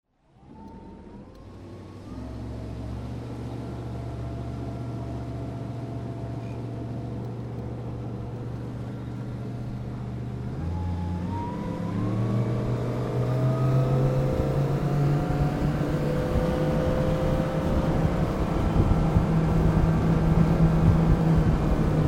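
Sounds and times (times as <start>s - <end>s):
boats: 0.1s - 22.0s.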